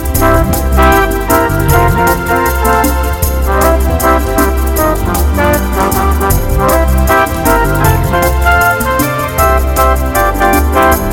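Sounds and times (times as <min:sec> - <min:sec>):
fast jazz brush drumming: 0:00.0 - 0:11.1.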